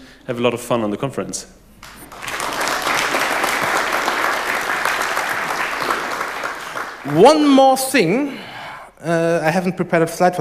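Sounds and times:
speech: 0.3s - 1.6s, 7.1s - 10.4s
conference audience applauding the sponsors: 1.8s - 7.8s.

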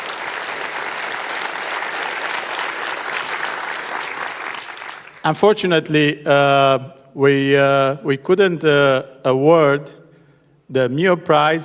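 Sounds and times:
audience applause: 0.0s - 5.3s
speech: 5.2s - 10.0s, 10.7s - 11.6s.

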